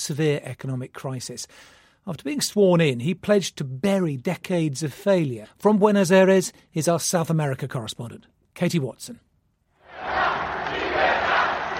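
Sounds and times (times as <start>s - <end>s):
speech: 0.0s - 9.3s
crowd cheering at Javier Milei's presidential swearing-in in Buenos Aires: 9.8s - 11.7s.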